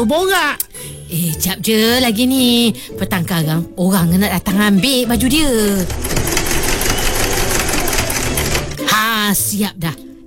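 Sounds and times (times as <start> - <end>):
speech: 0.0 - 6.3, 9.2 - 10.0
sewing machine stitching: 4.8 - 8.8.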